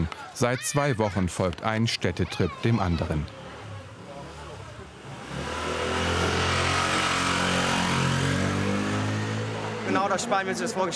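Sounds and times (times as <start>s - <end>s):
speech: 0.0s - 3.4s, 9.9s - 10.9s
motorcycle engine in narrow city street: 3.3s - 10.6s.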